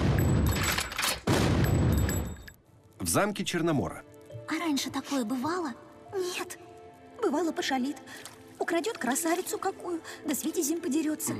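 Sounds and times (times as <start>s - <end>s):
cannon fire in an animated film: 0.0s - 2.1s
speech: 3.1s - 4.1s, 4.7s - 11.3s.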